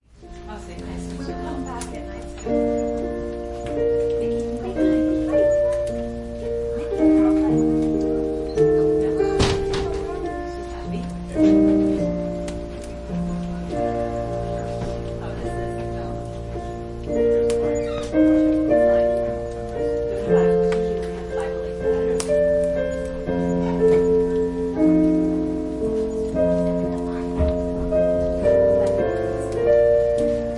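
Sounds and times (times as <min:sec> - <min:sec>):
piano prelude: 0:00.0 - 0:30.5.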